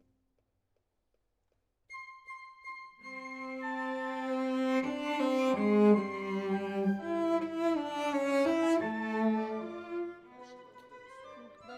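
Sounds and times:
cello solo: 0:03.0 - 0:11.7.

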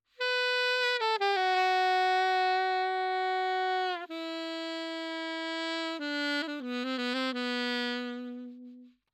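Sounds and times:
saxophone: 0:00.1 - 0:09.1.

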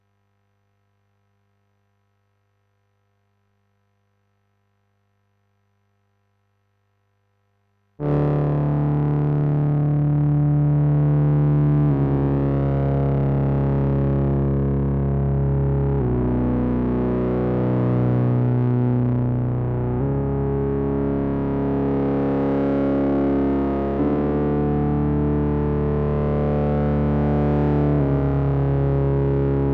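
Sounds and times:
synth: 0:08.0 - 0:29.7.

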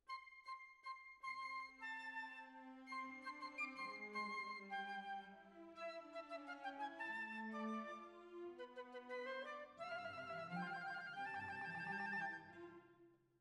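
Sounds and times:
clarinet: 0:00.0 - 0:13.0.

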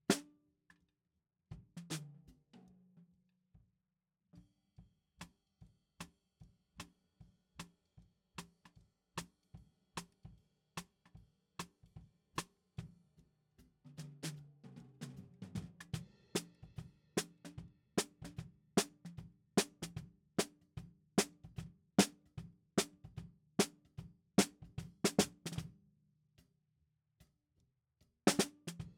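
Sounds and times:
snare drum: 0:14.0 - 0:20.6, 0:21.2 - 0:25.7, 0:28.3 - 0:28.9.

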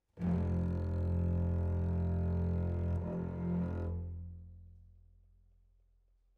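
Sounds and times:
double basses: 0:00.2 - 0:04.6.

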